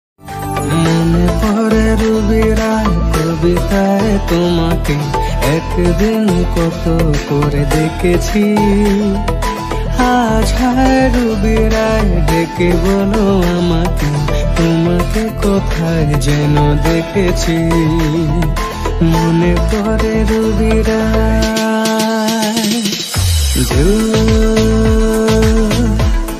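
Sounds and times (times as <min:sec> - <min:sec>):
Bengali ringtone mix: 0:00.2 - 0:26.3.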